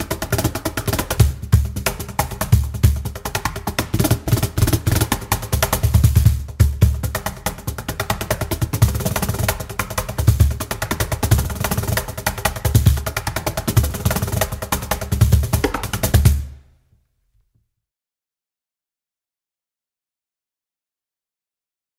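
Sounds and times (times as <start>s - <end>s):
cajon solo: 0.0s - 16.6s.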